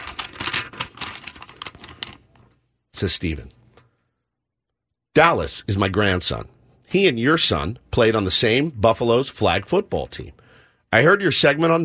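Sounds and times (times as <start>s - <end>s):
envelope torn open with crisp paper ripping and crinkling: 0.0s - 2.5s
speech: 3.0s - 3.6s, 5.2s - 11.8s.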